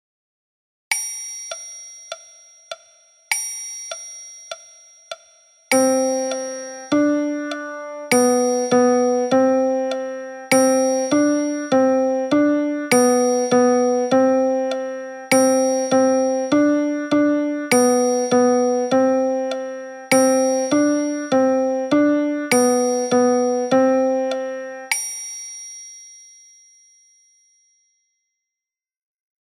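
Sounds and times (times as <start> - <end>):
piano music: 5.7 - 24.9.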